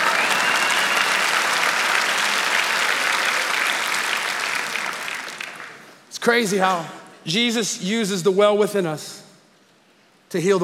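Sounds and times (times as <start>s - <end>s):
audience applause and clapping: 0.0s - 6.0s
speech: 6.2s - 9.2s, 10.3s - 10.6s.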